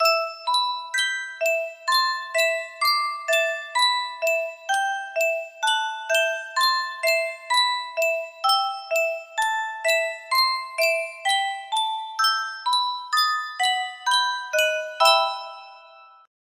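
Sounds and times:
music box melody: 0:00.0 - 0:16.3.

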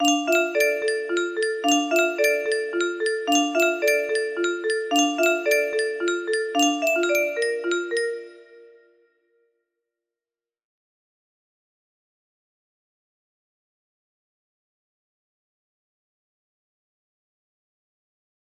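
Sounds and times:
haunted music box melody: 0:00.0 - 0:08.8.

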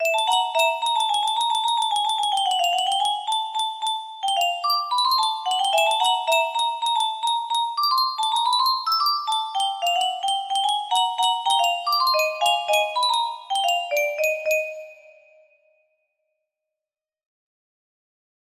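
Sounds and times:
creepy music box: 0:00.0 - 0:15.6.

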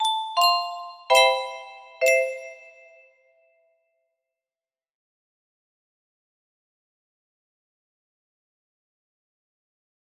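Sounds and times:
music box melody: 0:00.0 - 0:03.1.

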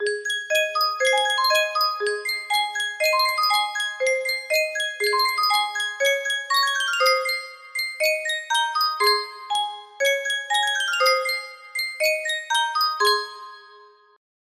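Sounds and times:
music box: 0:00.0 - 0:14.2.

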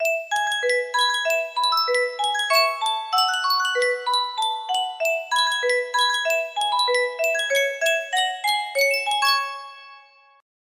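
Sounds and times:
Sankyo miniature music box: 0:00.0 - 0:10.4.

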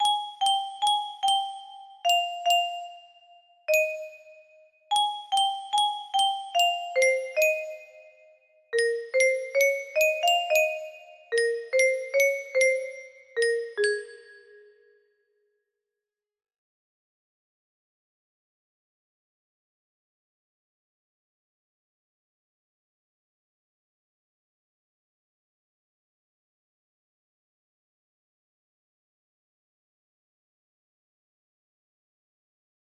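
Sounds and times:
music box: 0:00.0 - 0:14.9.

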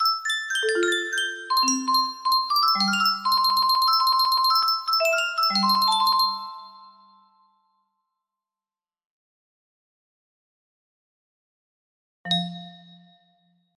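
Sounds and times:
music box melody: 0:00.0 - 0:07.6, 0:12.3 - 0:13.3.

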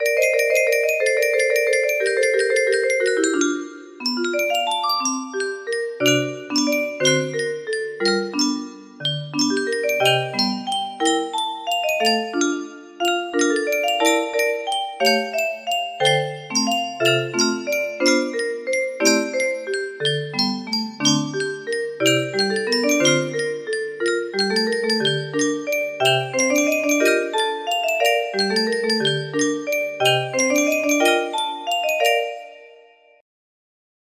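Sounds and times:
music box melody: 0:00.0 - 0:33.2.

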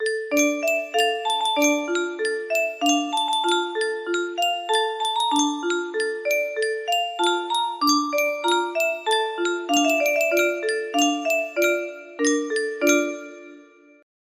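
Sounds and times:
Yunsheng music box melody: 0:00.0 - 0:13.8.

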